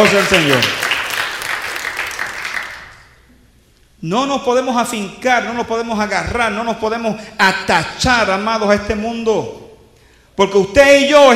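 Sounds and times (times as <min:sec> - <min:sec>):
speech: 0:00.0 - 0:00.8, 0:04.0 - 0:09.6, 0:10.4 - 0:11.3
church congregation applauding: 0:00.0 - 0:03.2.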